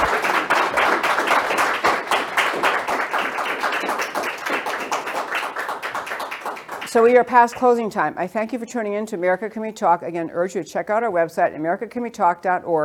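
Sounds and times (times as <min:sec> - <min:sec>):
studio audience applauding to thank the guests: 0:00.0 - 0:07.7
speech: 0:06.9 - 0:12.8.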